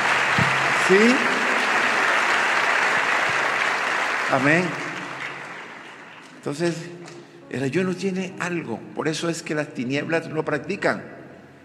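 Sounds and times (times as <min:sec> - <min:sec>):
congregation applauding during a church service: 0:00.0 - 0:07.0
speech: 0:00.9 - 0:01.3, 0:04.3 - 0:04.8, 0:06.4 - 0:11.2.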